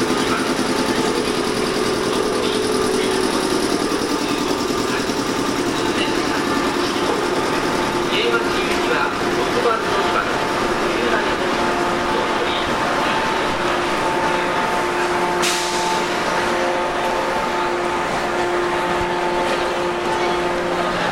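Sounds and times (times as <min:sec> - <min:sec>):
415-series electric train running on the Nippō Line: 0:00.0 - 0:21.0.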